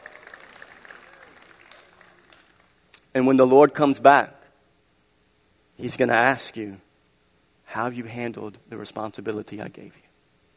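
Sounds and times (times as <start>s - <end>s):
audience clapping: 0.0s - 2.8s
speech: 3.1s - 4.4s, 5.8s - 6.8s, 7.7s - 10.0s.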